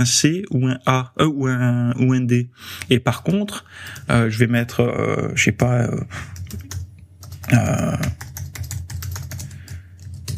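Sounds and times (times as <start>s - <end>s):
speech: 0.0s - 6.8s, 7.4s - 8.2s
typing on a computer keyboard: 6.4s - 10.3s.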